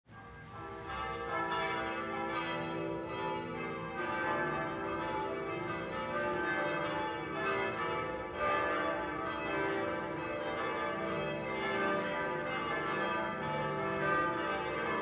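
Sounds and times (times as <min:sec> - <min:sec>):
church bells: 0:00.1 - 0:15.0.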